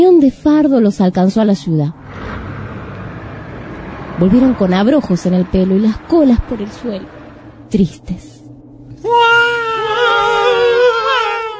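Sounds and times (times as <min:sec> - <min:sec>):
speech: 0:00.0 - 0:02.5, 0:04.2 - 0:08.3, 0:09.0 - 0:09.4
cat whining mournfully: 0:09.0 - 0:11.5.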